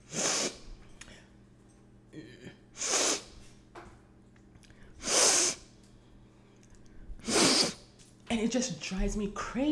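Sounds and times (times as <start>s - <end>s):
imitated snotty nose sniffing: 0.0s - 0.6s, 2.8s - 3.4s, 5.0s - 5.7s, 7.2s - 7.8s
speech: 8.4s - 9.7s.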